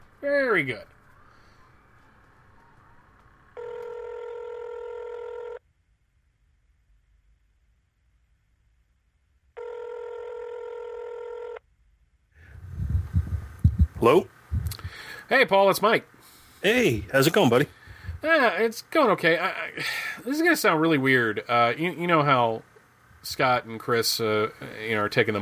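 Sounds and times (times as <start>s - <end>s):
speech: 0.2s - 1.0s, 14.0s - 14.4s, 15.3s - 25.4s
telephone DTMF tones as a number is dialed: 3.6s - 5.6s, 9.6s - 11.6s
low rumble: 12.4s - 15.0s, 17.8s - 18.2s.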